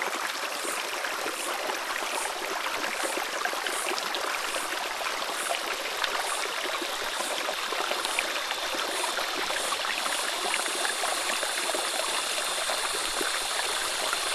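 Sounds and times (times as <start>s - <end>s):
creek flowing in a forest in Australia: 0.0s - 14.3s
forest insects in Australia: 0.2s - 14.3s
loud cicada in Australia: 0.5s - 14.3s.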